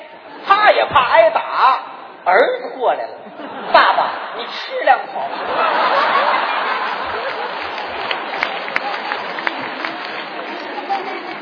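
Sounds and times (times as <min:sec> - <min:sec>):
speech: 0:00.8 - 0:06.5
laughter: 0:03.2 - 0:11.4
audience applause: 0:05.6 - 0:11.4.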